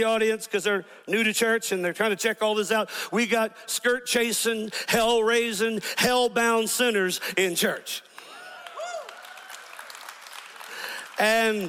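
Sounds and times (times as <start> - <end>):
speech: 0.0 - 8.2, 11.2 - 11.6
audience clapping: 8.0 - 11.6.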